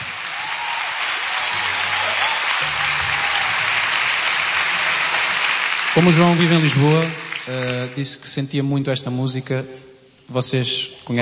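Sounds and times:
crowd applause: 0.0s - 8.3s
speech: 6.0s - 11.1s.

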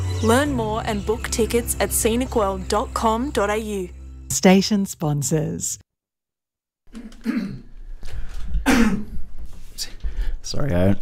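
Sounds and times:
speech: 0.2s - 5.8s, 6.9s - 7.6s, 10.5s - 11.0s
person coughing: 7.0s - 7.7s, 8.6s - 9.2s.

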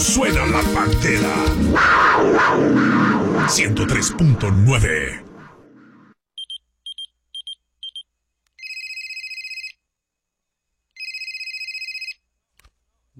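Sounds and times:
speech: 0.2s - 5.3s
telephone ringing with an incoming call: 8.6s - 9.8s, 11.0s - 12.2s.

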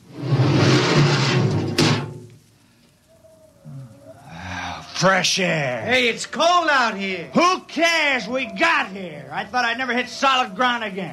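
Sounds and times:
faint steady whine: 0.0s - 11.1s
quieter rustling: 0.0s - 11.1s
spaceship airlock opening hiss: 0.0s - 11.1s
sharp clunk: 1.6s - 2.3s
speech: 5.0s - 11.1s.

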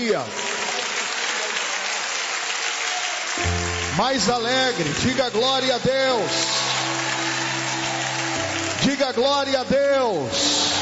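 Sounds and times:
speech: 0.0s - 0.5s, 3.4s - 6.6s, 8.8s - 10.7s
audience applauding: 0.0s - 10.8s.

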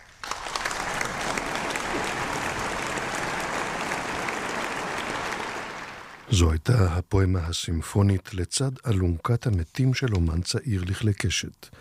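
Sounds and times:
applause: 0.0s - 6.4s
speech: 6.3s - 11.8s.

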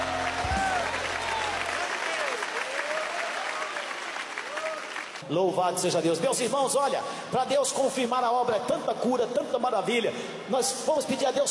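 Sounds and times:
audience clapping hands in praise: 0.0s - 5.3s
speech: 5.3s - 11.4s.

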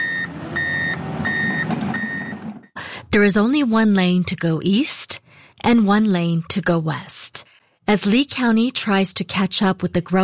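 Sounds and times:
construction vehicle reversing beeps at roadwork on Corkscrew Road, Estero: 0.0s - 2.4s
truck engine rumble: 0.0s - 2.8s
speech: 3.1s - 10.2s.

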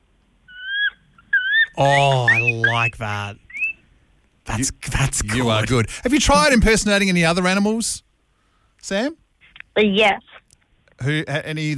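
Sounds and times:
voice imitating a bald eagle call: 0.6s - 3.0s
speech: 1.8s - 3.4s, 4.6s - 8.1s, 8.8s - 9.2s, 9.8s - 10.3s, 11.0s - 11.7s.

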